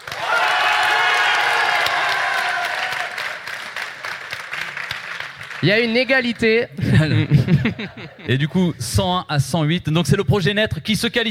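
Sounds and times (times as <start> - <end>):
crowd cheering, whooping and yelling: 0.0 - 3.7
crowd applauding: 0.0 - 6.6
speech: 5.6 - 11.2
laughter: 6.7 - 8.8.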